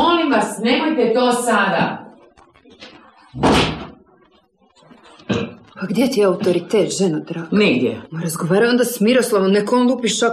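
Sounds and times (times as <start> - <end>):
speech: 0.6 - 2.0, 3.4 - 3.7, 5.8 - 10.3
chest of drawers being moved: 3.4 - 4.0.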